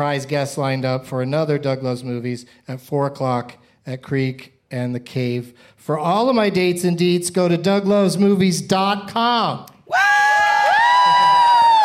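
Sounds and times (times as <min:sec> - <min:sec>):
speech: 0:00.0 - 0:10.0
crowd cheering and clapping: 0:09.9 - 0:11.8.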